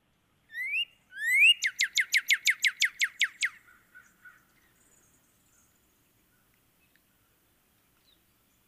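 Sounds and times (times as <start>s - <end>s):
northern cardinal singing: 0.5s - 3.6s.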